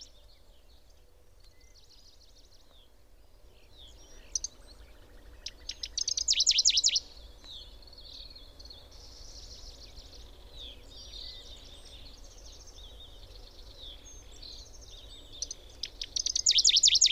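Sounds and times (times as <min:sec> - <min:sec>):
bird calling: 0:05.4 - 0:07.1, 0:15.3 - 0:17.1.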